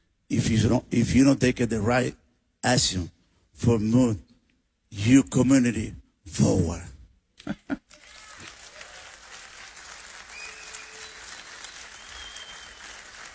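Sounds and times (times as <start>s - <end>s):
speech: 0.3s - 4.3s, 4.9s - 7.8s
audience applause: 7.9s - 13.3s.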